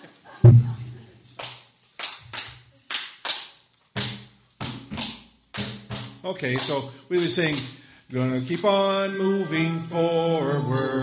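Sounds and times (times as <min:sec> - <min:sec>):
hands clapping a rhythmic beat: 0:01.4 - 0:08.8, 0:10.2 - 0:10.6
speech: 0:06.2 - 0:11.0.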